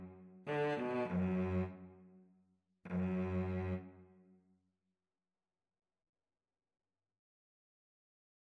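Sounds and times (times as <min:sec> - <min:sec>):
cello duet: 0:00.0 - 0:02.1, 0:02.9 - 0:04.1.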